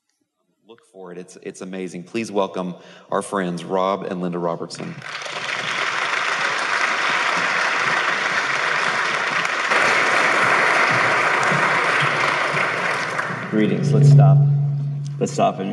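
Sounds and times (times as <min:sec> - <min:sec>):
speech: 0:00.7 - 0:05.4, 0:13.5 - 0:14.5, 0:15.2 - 0:15.7
audience applause greeting guest speakers: 0:04.8 - 0:13.8.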